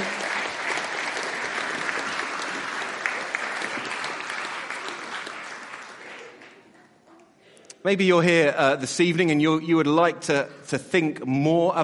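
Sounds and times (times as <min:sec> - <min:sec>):
crowd applauding: 0:00.0 - 0:07.0
speech: 0:07.8 - 0:11.8.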